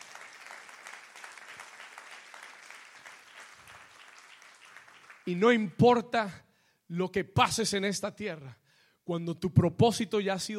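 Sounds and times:
audience applause: 0:00.0 - 0:05.3
speech: 0:05.3 - 0:10.5.

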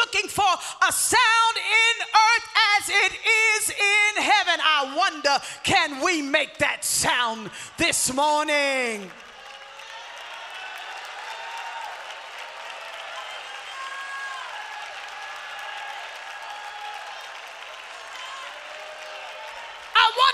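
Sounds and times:
speech: 0:00.1 - 0:09.2
audience clapping hands: 0:08.5 - 0:20.3.

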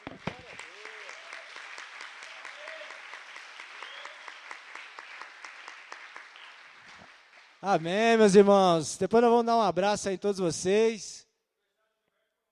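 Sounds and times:
audience applause: 0:00.0 - 0:08.4
speech: 0:07.6 - 0:11.2.

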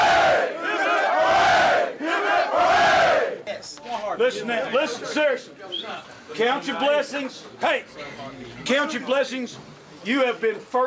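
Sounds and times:
team shouting three cheers: 0:00.0 - 0:03.4
speech: 0:04.2 - 0:10.8.

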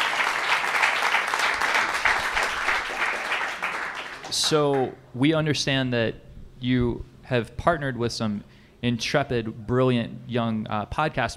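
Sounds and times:
audience applause: 0:00.0 - 0:04.9
speech: 0:04.3 - 0:11.3.

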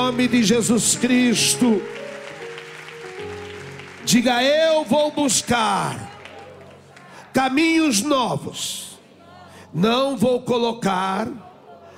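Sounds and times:
applause: 0:00.0 - 0:07.4
speech: 0:00.1 - 0:02.1, 0:04.1 - 0:06.1, 0:07.4 - 0:08.9, 0:09.7 - 0:11.4.

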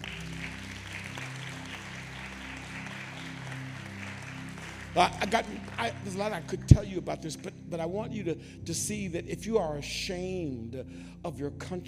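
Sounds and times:
audience clapping: 0:00.0 - 0:07.0
low sustained musical drone: 0:00.0 - 0:11.8
speech: 0:05.0 - 0:11.8.

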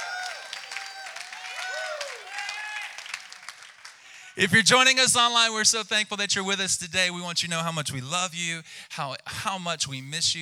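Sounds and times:
whooping cheers: 0:00.0 - 0:03.6
church congregation clapping: 0:00.0 - 0:04.4
speech: 0:04.4 - 0:10.4.

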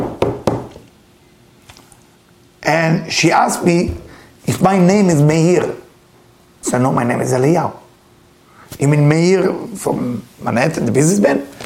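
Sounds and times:
firm hollow knocks on a door: 0:00.0 - 0:00.8
speech: 0:02.7 - 0:05.8, 0:06.6 - 0:07.8, 0:08.7 - 0:11.6.

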